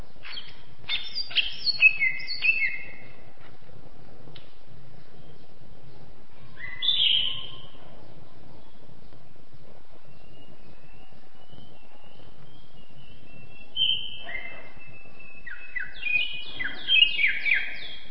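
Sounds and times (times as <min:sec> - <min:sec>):
champion Greater green leafbird singing: 0:00.2 - 0:03.0, 0:06.5 - 0:07.8, 0:10.0 - 0:18.1.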